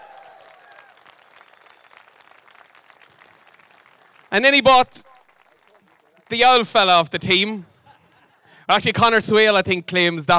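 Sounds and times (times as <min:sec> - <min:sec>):
crowd applauding: 0:00.0 - 0:06.9
speech: 0:04.3 - 0:05.1, 0:06.3 - 0:07.7, 0:08.7 - 0:10.3.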